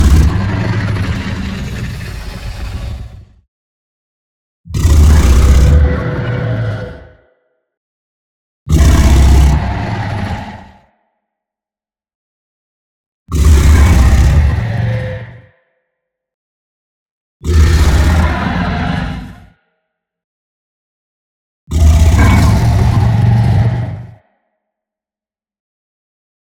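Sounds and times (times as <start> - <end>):
dragon roar: 0.0 - 3.4, 4.8 - 7.4, 8.7 - 10.9, 13.4 - 15.5, 17.5 - 19.6, 21.7 - 24.2.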